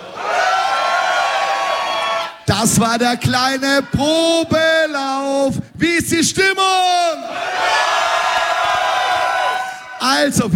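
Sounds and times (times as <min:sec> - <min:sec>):
crowd shouting and cheering: 0:00.0 - 0:04.6, 0:07.2 - 0:10.5
speech: 0:02.5 - 0:07.8, 0:10.0 - 0:10.5.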